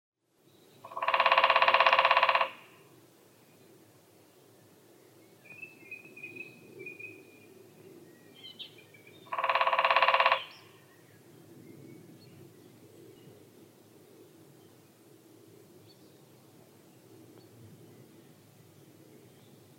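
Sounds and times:
lesser spotted woodpecker Dendrocopos minor calling: 0.8s - 2.8s, 9.2s - 10.7s.

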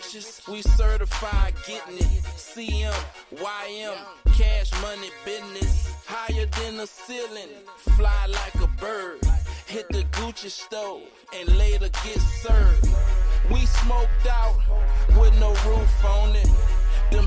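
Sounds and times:
low bass: 0.7s - 3.1s, 4.3s - 4.9s, 7.9s - 10.2s, 11.5s - 17.2s.

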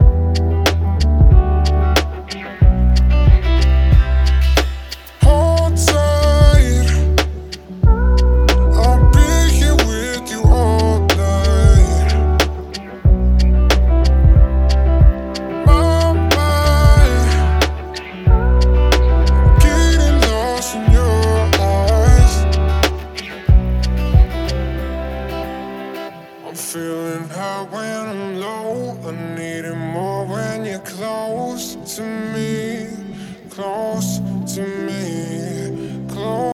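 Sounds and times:
relaxing study beats: 0.0s - 25.2s.

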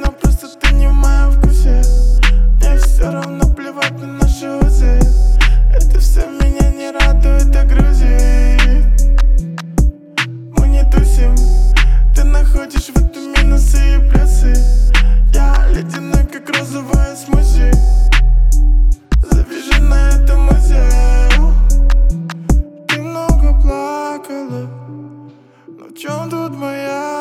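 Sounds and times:
41 44 and 46 Hz low bass tones: 0.7s - 3.6s, 4.3s - 10.0s, 10.6s - 16.3s, 17.0s - 23.7s.

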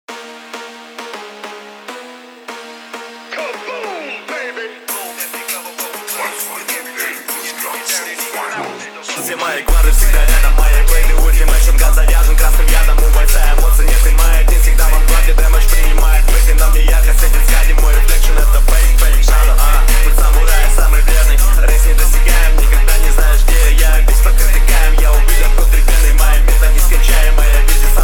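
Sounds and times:
29 to 37 Hz low bass tone: 9.7s - 28.0s.

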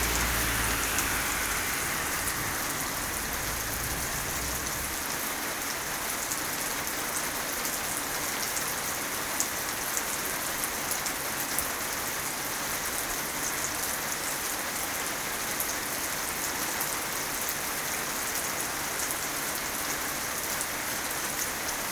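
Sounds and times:
thunder: 0.0s - 5.4s
rain: 0.0s - 21.9s.

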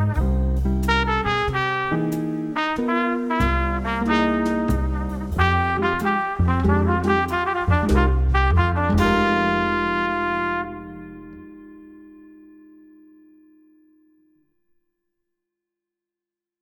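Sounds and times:
jazz music: 0.0s - 12.7s.

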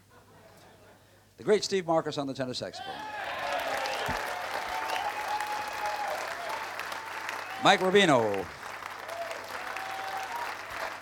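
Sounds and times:
speech: 1.4s - 3.2s, 7.6s - 8.6s
audience applause for the band: 2.8s - 11.0s.

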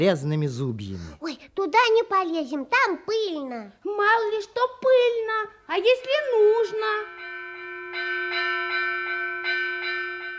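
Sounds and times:
speech: 0.0s - 7.2s
bell ringing for lunch on a farm during threshing: 6.4s - 10.3s.

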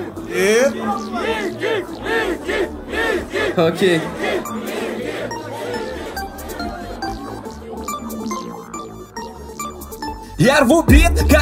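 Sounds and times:
crowd cheering and yelling: 0.0s - 7.3s
laughter: 0.0s - 9.2s
speech: 0.3s - 2.6s, 3.6s - 4.3s, 10.4s - 11.4s.

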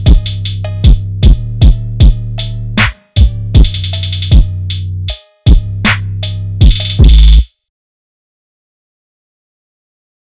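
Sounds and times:
boosted bass: 0.0s - 7.4s.

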